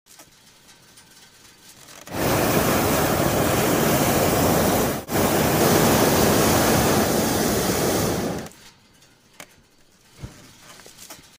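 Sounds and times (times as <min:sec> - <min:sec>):
hot air balloon: 0:02.0 - 0:08.5.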